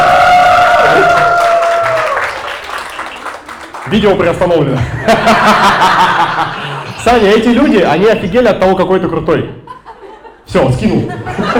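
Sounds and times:
cheering: 0.0 - 3.9
applause: 0.6 - 4.3
speech: 3.9 - 9.6, 10.5 - 11.5
laughter: 4.7 - 7.2, 9.7 - 11.5.

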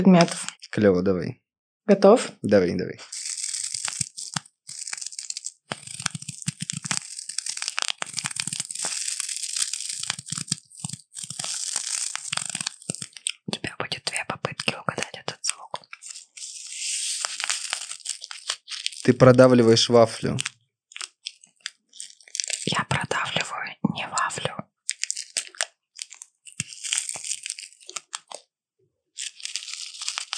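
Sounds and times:
speech: 0.0 - 3.2, 19.2 - 20.5
crunching potato chips: 3.0 - 13.5, 14.1 - 23.3, 24.8 - 28.5, 29.1 - 30.3.

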